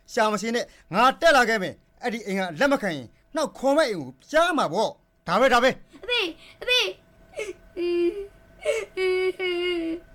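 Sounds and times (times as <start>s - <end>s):
speech: 0.1s - 10.1s
woman crying with sobs and wails: 7.3s - 10.1s.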